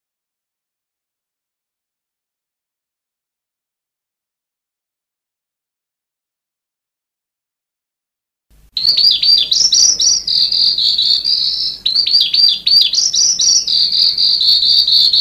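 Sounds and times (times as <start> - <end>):
sanma bird high upslurred notes and trill: 8.8 - 15.2.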